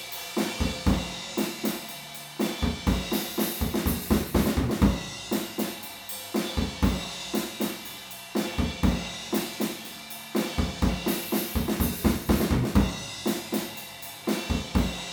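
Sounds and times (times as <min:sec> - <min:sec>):
drums recorded with PZM omni microphones in stereo: 0:00.0 - 0:15.1.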